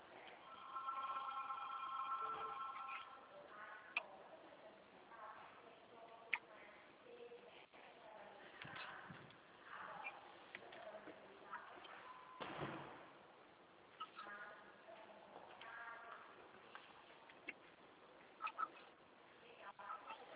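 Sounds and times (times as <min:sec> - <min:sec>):
telephone ringing with electronic trill: 0:00.4 - 0:03.4
faint murmuring: 0:02.2 - 0:12.4, 0:13.9 - 0:17.7, 0:18.3 - 0:20.3.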